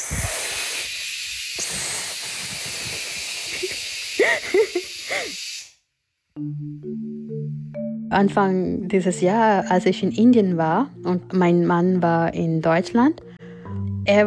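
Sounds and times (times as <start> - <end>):
pressure cooker whistling escaping steam: 0.0 - 5.8
speech: 4.2 - 5.4, 6.4 - 7.1, 8.1 - 13.3, 14.1 - 14.2.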